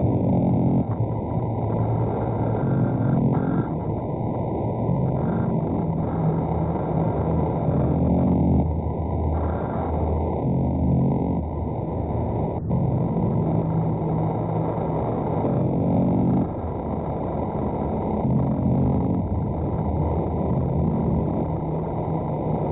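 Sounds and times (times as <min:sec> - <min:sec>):
strange noise: 0:00.0 - 0:22.7.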